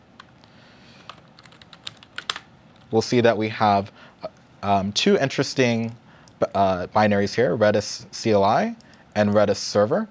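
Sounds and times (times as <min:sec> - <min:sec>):
computer keyboard key clicks typing a terminal command: 0:01.1 - 0:02.4
speech: 0:02.9 - 0:10.0.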